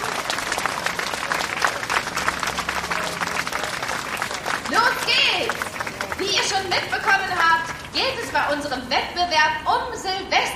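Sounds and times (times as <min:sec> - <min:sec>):
audience applauding: 0:00.0 - 0:08.2
speech: 0:06.8 - 0:10.5.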